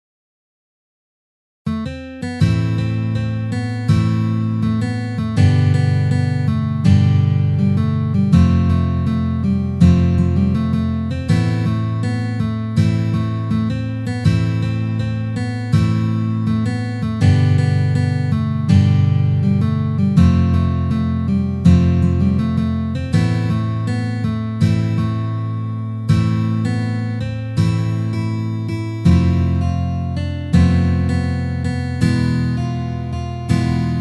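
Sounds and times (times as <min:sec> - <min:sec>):
fast tempo guitar: 0:01.7 - 0:33.9.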